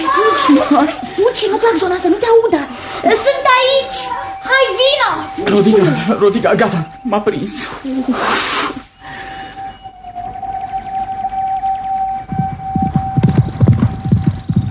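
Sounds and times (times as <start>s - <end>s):
train approaching: 0.0s - 14.6s
speech: 0.5s - 9.4s.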